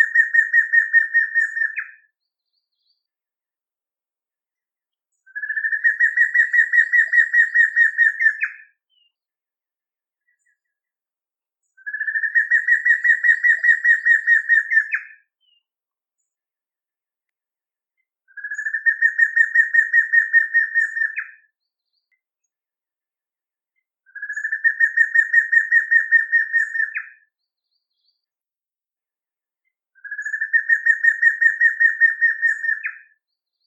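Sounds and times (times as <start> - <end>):
matracão bird singing: 0.0 - 3.1, 5.1 - 9.3, 11.6 - 16.4, 18.2 - 22.6, 23.8 - 28.4, 29.6 - 33.6.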